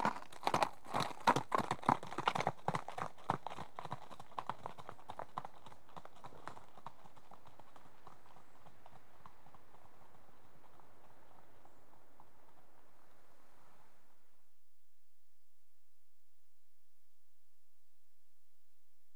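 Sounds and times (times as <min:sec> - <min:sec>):
two horses trotting on a gravelly track: 0:00.0 - 0:12.9.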